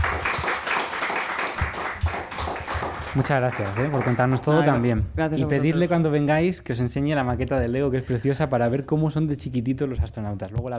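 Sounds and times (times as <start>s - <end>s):
audience applause: 0.0s - 4.9s
speech: 3.1s - 10.7s.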